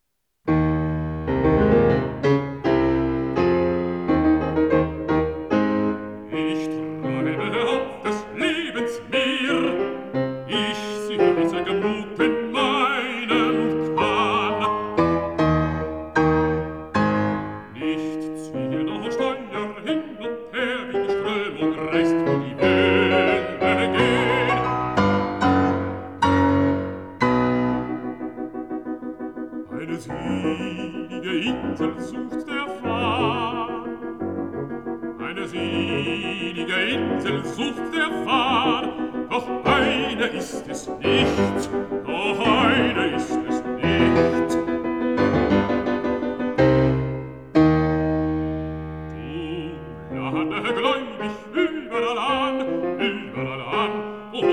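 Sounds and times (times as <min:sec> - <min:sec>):
piano: 0:00.0 - 0:54.5
person singing: 0:05.6 - 0:16.0, 0:17.0 - 0:27.5, 0:29.6 - 0:45.7, 0:49.0 - 0:54.5.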